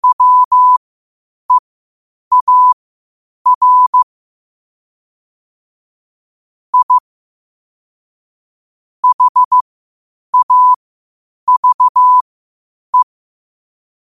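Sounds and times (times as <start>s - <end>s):
morse code at 5 wpm: 0.0s - 0.8s, 2.3s - 2.8s, 3.5s - 4.0s, 6.8s - 7.0s, 9.0s - 9.6s, 10.4s - 10.8s, 11.5s - 12.2s.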